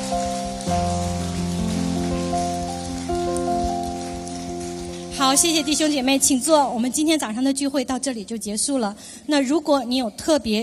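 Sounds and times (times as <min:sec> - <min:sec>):
audience applause: 0:00.0 - 0:06.0
speech: 0:05.2 - 0:10.6.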